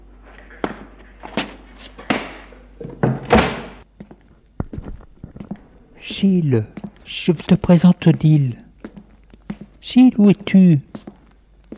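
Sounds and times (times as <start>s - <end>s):
door opening: 2.8s - 3.8s
speech: 6.2s - 8.6s, 9.8s - 11.0s.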